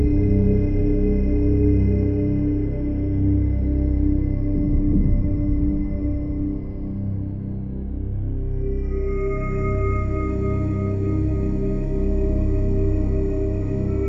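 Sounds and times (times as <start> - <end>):
ambient music theme: 0.0 - 14.0.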